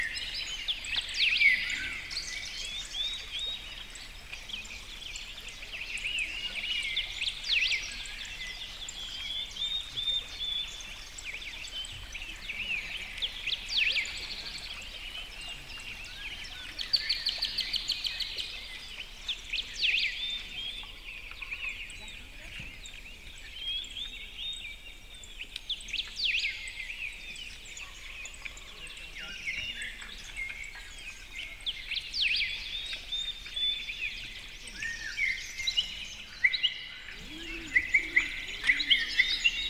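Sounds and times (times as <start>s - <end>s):
tranquil birdsong: 0.0s - 39.6s.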